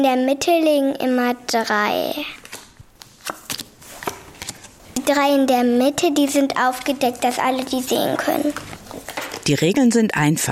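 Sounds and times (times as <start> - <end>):
speech: 0.0 - 2.4, 5.0 - 10.5
shuffling a deck of 90 playing cards for a dinosaur card game: 2.4 - 5.1, 6.1 - 9.6.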